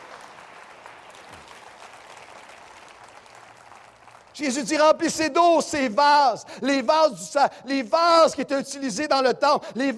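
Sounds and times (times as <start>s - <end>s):
audience applauding: 0.0s - 4.4s
speech: 4.4s - 9.9s.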